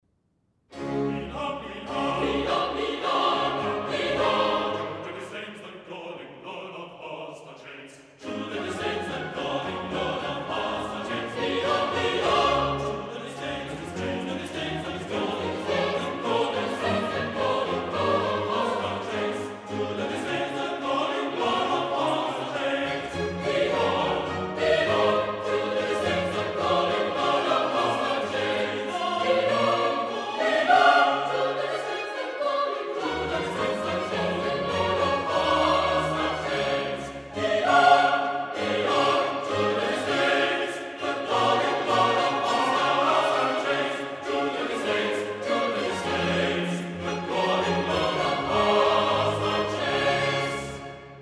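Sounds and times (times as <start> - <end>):
choir singing: 0.7 - 51.2.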